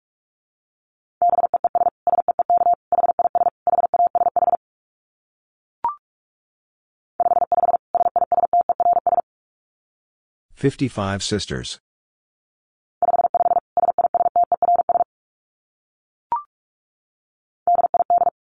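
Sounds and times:
Morse code tones at 45 wpm: 1.2 - 4.6, 7.2 - 9.2, 13.0 - 15.1, 17.7 - 18.4
speech: 10.6 - 11.9.

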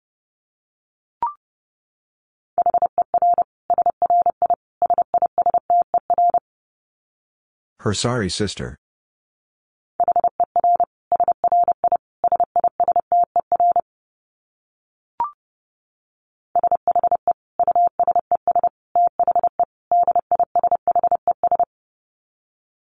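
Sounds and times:
Morse code tones at 30 wpm: 2.6 - 6.4, 10.0 - 13.8, 16.6 - 21.7
speech: 7.8 - 8.8.

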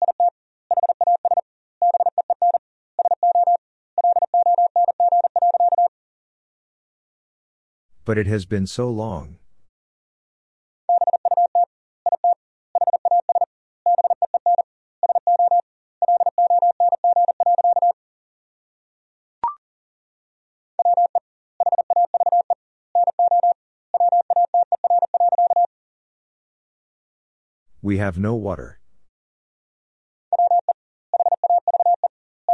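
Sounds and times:
Morse code tones at 40 wpm: 0.0 - 5.9, 10.9 - 18.0, 20.8 - 25.7, 30.3 - 32.5
speech: 8.1 - 9.4, 27.9 - 28.8.

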